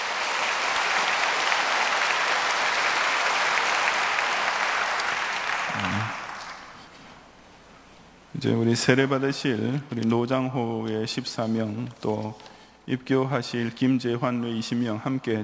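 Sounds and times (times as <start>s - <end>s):
audience applause: 0.0s - 7.0s
speech: 8.4s - 15.4s.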